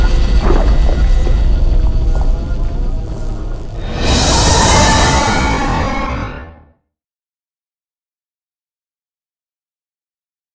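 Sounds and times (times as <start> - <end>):
synth pads: 0.0 - 5.5.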